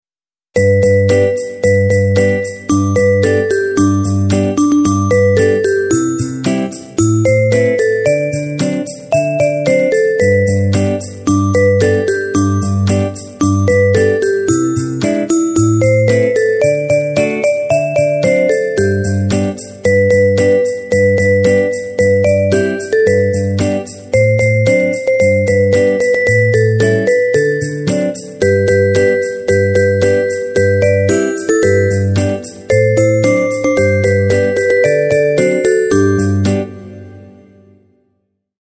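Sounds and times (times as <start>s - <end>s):
Christmas song: 0.6s - 38.2s.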